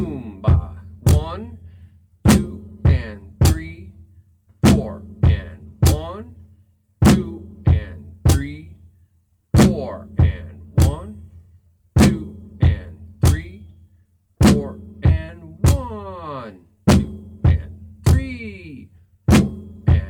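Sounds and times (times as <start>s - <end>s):
drum beat: 0.0s - 1.6s, 2.2s - 4.0s, 4.6s - 6.3s, 7.0s - 8.7s, 9.6s - 11.2s, 12.0s - 13.7s, 14.4s - 16.0s, 16.9s - 18.6s, 19.3s - 20.0s.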